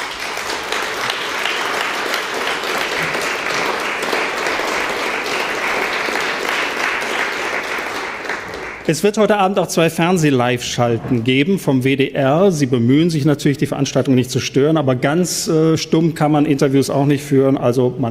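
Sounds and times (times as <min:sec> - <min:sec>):
audience applause in hall: 0:00.0 - 0:09.1
speech: 0:08.9 - 0:18.0.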